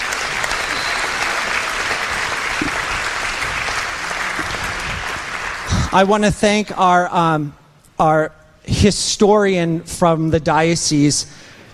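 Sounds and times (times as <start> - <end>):
round of applause: 0.0 - 6.3
speech: 5.9 - 11.5.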